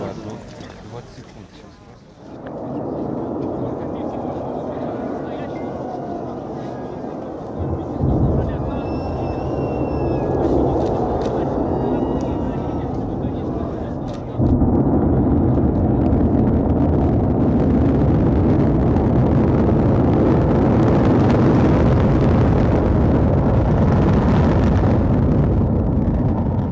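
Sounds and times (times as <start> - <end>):
faint voices: 0.0 - 16.8
Soyuz rocket launch engine roar: 2.2 - 26.7
whistling tones: 8.4 - 11.0.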